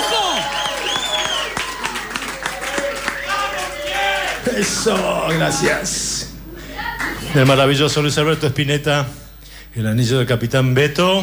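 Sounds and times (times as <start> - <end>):
audience applause: 0.0 - 8.0
speech: 4.6 - 6.1, 7.3 - 11.2.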